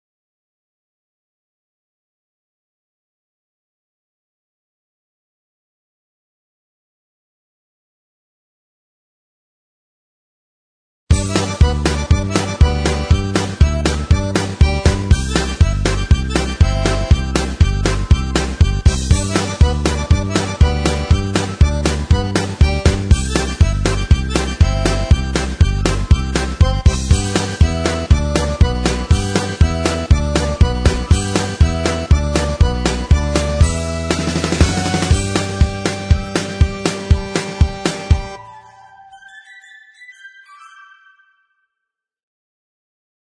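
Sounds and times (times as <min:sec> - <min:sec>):
instrumental music: 0:11.1 - 0:41.6.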